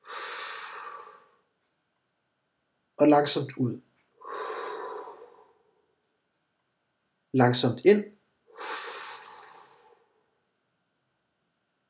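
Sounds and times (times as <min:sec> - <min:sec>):
slow deep inhalation through the nose during guided breathing: 0:00.0 - 0:01.5, 0:04.2 - 0:05.8, 0:08.5 - 0:10.3
speech: 0:03.0 - 0:03.9, 0:07.4 - 0:08.2.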